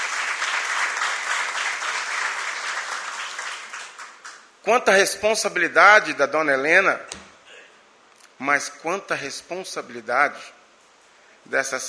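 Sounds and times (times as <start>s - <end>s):
audience applause: 0.0s - 4.5s
speech: 4.6s - 7.2s, 8.4s - 10.6s, 11.5s - 11.8s.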